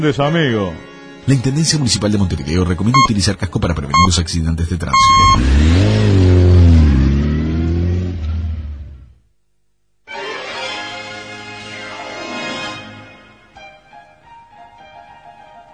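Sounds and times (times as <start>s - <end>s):
speech: 0.0s - 6.9s
motorcycle engine revving: 5.0s - 9.0s.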